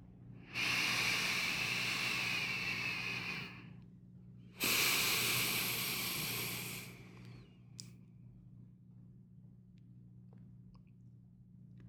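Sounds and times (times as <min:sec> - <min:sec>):
slow deep breath: 0:00.4 - 0:03.8, 0:04.6 - 0:07.5.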